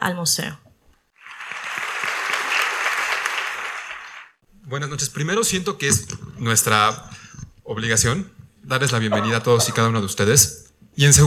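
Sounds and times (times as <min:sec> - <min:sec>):
speech: 0:00.0 - 0:00.7, 0:04.7 - 0:11.2
audience applause: 0:01.2 - 0:04.4.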